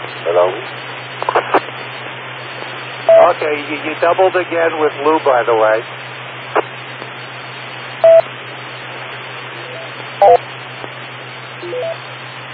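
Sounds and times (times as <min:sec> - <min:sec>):
steady static: 0:00.0 - 0:12.5
speech: 0:00.2 - 0:00.9, 0:03.3 - 0:06.0
radio repeater beep tones: 0:03.0 - 0:04.0, 0:08.0 - 0:08.3, 0:09.6 - 0:10.4, 0:11.6 - 0:12.1.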